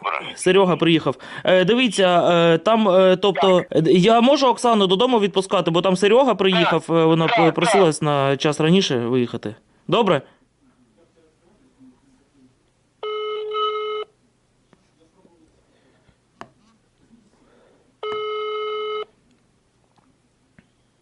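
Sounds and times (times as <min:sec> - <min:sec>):
speech: 0:00.2 - 0:10.4
phone call ringing unanswered: 0:07.3 - 0:07.8, 0:13.0 - 0:14.1, 0:18.0 - 0:19.1.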